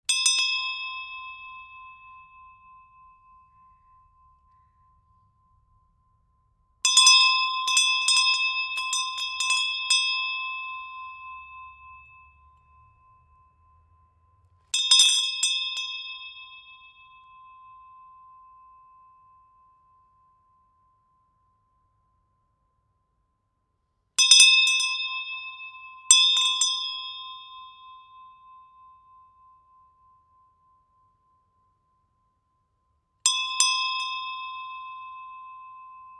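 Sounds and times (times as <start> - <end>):
school hand bell ringing: 0.1 - 5.4, 6.8 - 20.2, 24.2 - 30.9, 33.2 - 36.1.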